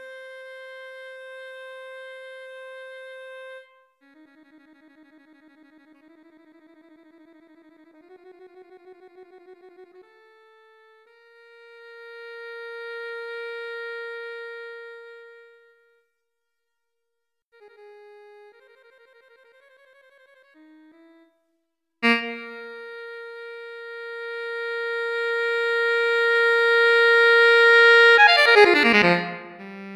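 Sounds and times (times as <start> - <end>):
MIDI music: 22.0 - 23.3, 24.8 - 29.9.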